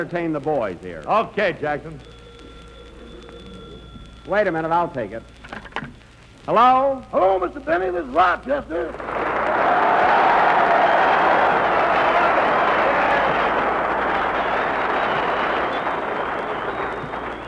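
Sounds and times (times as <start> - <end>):
speech: 0.0 - 2.2, 4.2 - 5.4, 6.4 - 9.2
studio audience applause: 8.9 - 17.4.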